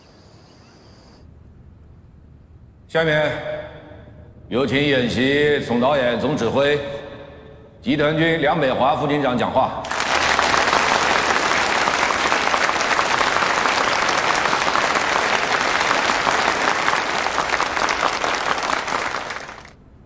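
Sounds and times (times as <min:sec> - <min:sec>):
speech: 0:02.9 - 0:03.6, 0:04.5 - 0:07.0, 0:07.8 - 0:09.9
warm audience applause: 0:09.8 - 0:19.8.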